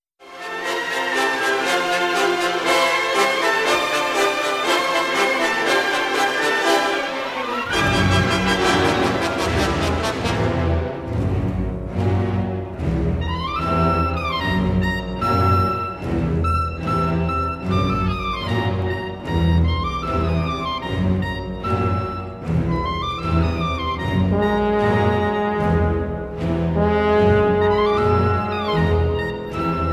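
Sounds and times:
tuba orchestral excerpt: 0.4 - 29.9.

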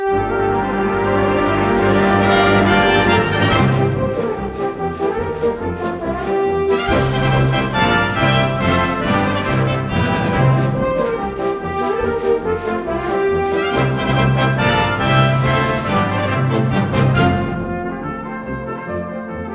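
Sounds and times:
concert band playing an overture: 0.2 - 19.0.

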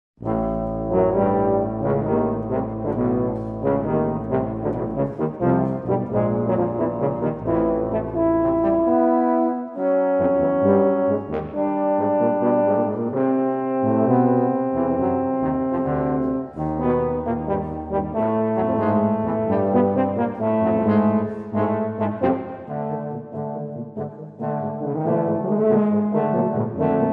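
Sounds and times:
tuba quartet playing an allegro: 0.2 - 27.1.

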